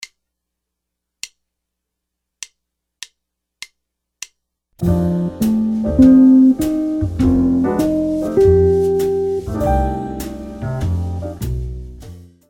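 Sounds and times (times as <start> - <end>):
jazz guitar lick: 4.8 - 12.2.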